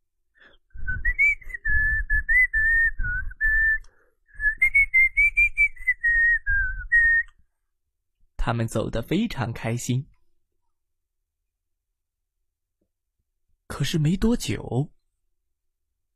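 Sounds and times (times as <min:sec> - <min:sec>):
cheerful whistled tune: 0:00.7 - 0:07.4
speech: 0:08.5 - 0:10.2, 0:13.8 - 0:15.0.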